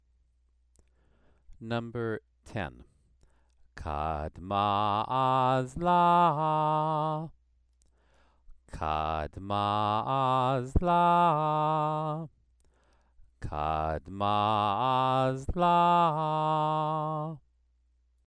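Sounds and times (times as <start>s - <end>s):
Torah trope cantillation exercise: 3.8s - 7.3s, 8.7s - 12.3s, 13.4s - 17.4s.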